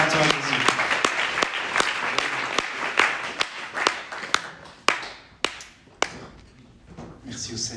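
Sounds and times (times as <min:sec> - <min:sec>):
audience applause: 0:00.0 - 0:06.1.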